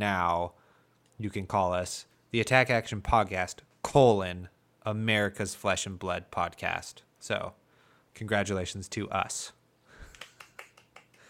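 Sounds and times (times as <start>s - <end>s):
speech: 0.0s - 0.6s, 1.2s - 7.6s, 8.2s - 9.6s
polite golf clapping: 10.0s - 11.2s.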